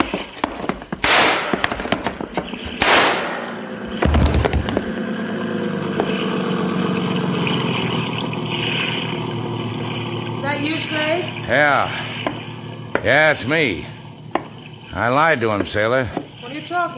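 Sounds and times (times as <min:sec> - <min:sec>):
steady low mechanical rumble: 0:00.0 - 0:16.9
gunshots: 0:01.0 - 0:04.8
speech: 0:10.8 - 0:12.0, 0:13.0 - 0:14.0, 0:14.9 - 0:16.9.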